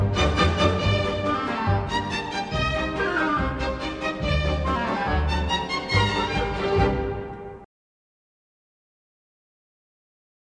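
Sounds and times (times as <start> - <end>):
galop music: 0.0 - 7.7.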